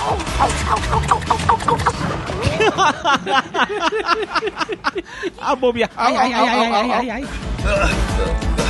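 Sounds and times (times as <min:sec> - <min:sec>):
chickens clucking: 0:00.0 - 0:02.1
laughter: 0:00.0 - 0:07.2
speech: 0:00.1 - 0:01.9, 0:02.8 - 0:08.5.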